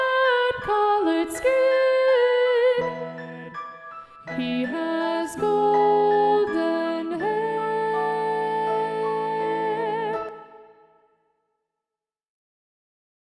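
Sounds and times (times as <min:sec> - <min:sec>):
soprano voice singing: 0:00.0 - 0:03.7, 0:04.3 - 0:10.8.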